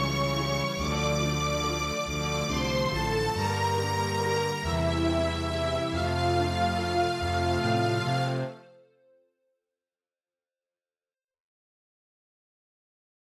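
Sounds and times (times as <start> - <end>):
MIDI music: 0.0 - 8.9.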